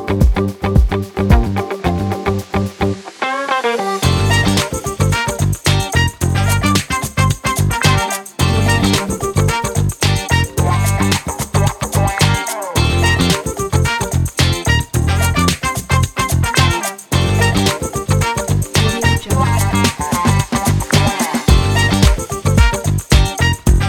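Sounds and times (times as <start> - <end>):
uplifting funk groove: 0.0 - 23.8.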